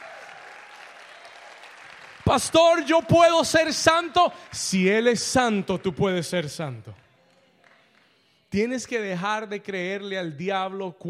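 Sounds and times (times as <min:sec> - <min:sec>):
audience applause: 0:00.0 - 0:06.2
speech: 0:02.3 - 0:07.0, 0:08.5 - 0:11.0.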